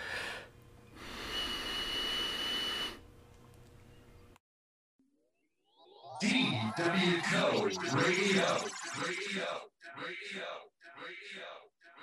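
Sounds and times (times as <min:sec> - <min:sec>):
nose whistle: 0:01.1 - 0:03.0
speech: 0:06.2 - 0:11.6.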